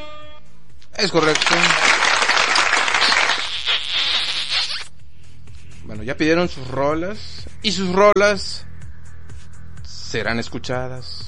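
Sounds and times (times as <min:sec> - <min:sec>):
speech: 0:01.0 - 0:02.0, 0:06.1 - 0:08.7, 0:10.1 - 0:11.2
applause: 0:01.1 - 0:03.6.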